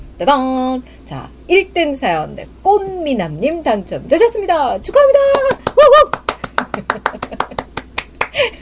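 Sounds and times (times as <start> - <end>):
speech: 0.2 - 6.2
hand clapping: 5.2 - 8.5.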